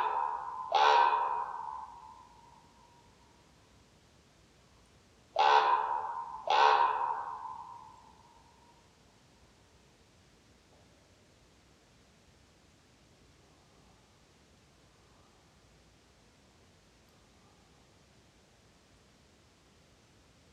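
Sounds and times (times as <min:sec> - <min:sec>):
common raven croaking: 0:00.0 - 0:02.8, 0:05.4 - 0:08.4.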